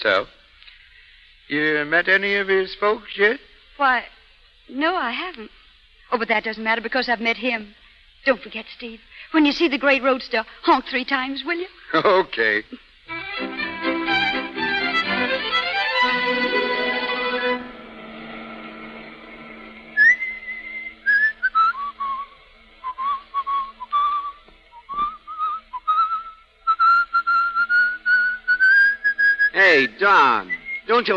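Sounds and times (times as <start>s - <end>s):
speech: 0.0s - 0.4s, 1.5s - 13.6s, 30.0s - 31.1s
buzzing harmonic sound: 13.1s - 29.5s
man whistling a love song: 19.9s - 29.6s, 30.4s - 30.9s.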